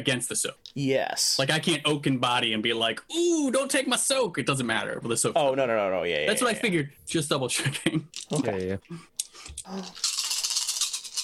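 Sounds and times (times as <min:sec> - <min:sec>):
speech: 0:00.0 - 0:10.1
handful of dice rattling and clattering: 0:10.0 - 0:11.2.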